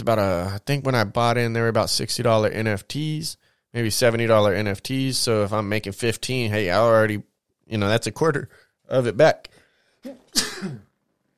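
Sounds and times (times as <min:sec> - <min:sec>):
speech: 0:00.0 - 0:10.8
person sneezing: 0:10.0 - 0:11.0.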